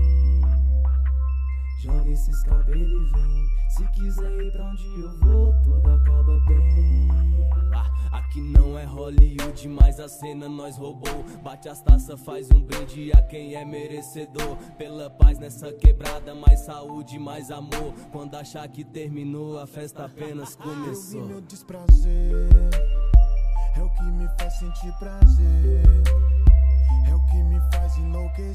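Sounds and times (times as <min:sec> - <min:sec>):
deep hip hop bass: 0:00.0 - 0:13.6, 0:15.2 - 0:16.7, 0:21.9 - 0:28.5.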